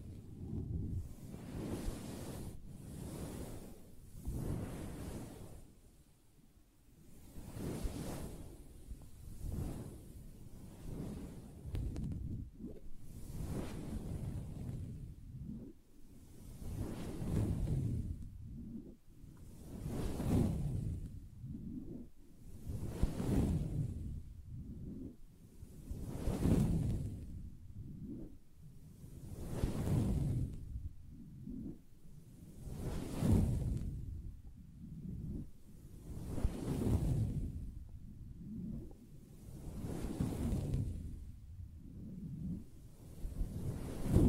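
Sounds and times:
soft scratching and brushing on a fabric surface: 0.0s - 5.7s, 7.1s - 41.3s, 42.0s - 44.2s.

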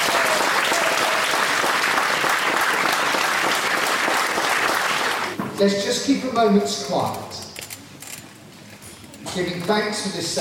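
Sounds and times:
round of applause: 0.0s - 5.4s
speech: 5.6s - 7.4s, 9.4s - 10.3s.

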